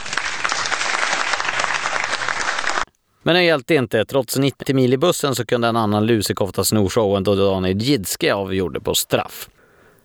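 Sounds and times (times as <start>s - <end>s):
crowd of spectators cheering at hockey match: 0.0s - 2.9s
speech: 3.2s - 9.6s.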